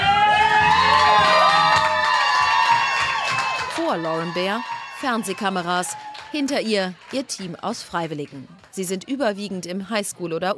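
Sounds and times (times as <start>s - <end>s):
high-pitched shouts and whoops: 0.0s - 6.4s
crowd cheering at election party: 0.0s - 8.9s
speech: 3.9s - 10.5s.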